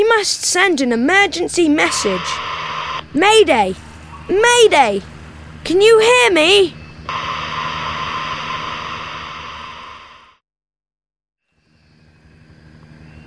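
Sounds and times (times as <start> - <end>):
helicopter flying: 0.0 - 10.2
speech: 0.2 - 6.8.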